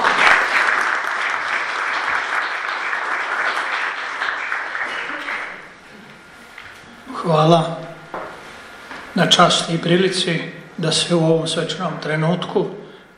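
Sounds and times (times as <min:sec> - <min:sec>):
audience applause at a World Roma Day ceremony: 0:00.0 - 0:05.7
speech: 0:07.3 - 0:07.8, 0:09.2 - 0:12.8.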